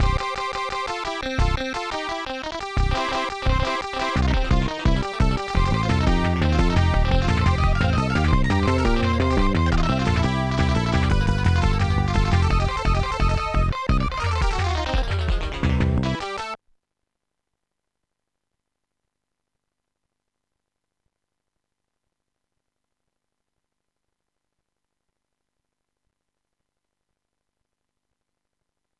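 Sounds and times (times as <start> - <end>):
rock music: 0.0 - 16.6.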